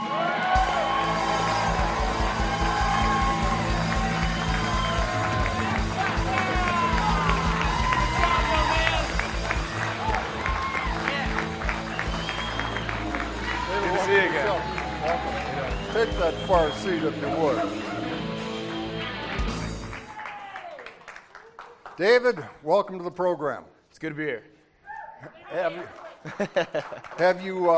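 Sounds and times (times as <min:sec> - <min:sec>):
studio audience applause and cheers welcoming a football player guest: 0:00.0 - 0:22.0
speech: 0:16.5 - 0:17.8, 0:22.0 - 0:24.5, 0:25.2 - 0:27.7
laughter: 0:25.2 - 0:27.2.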